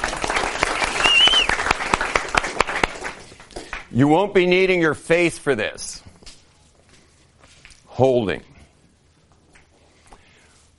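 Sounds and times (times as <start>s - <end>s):
scattered clapping for an assistant: 0.0s - 3.9s
speech: 4.0s - 6.1s, 8.0s - 8.5s.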